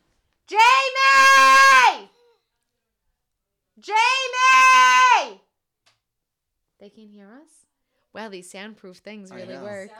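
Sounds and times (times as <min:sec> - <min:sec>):
speech: 0:00.5 - 0:00.7, 0:03.8 - 0:04.0, 0:06.9 - 0:09.9
child screaming in another room: 0:00.5 - 0:02.1, 0:03.9 - 0:05.4.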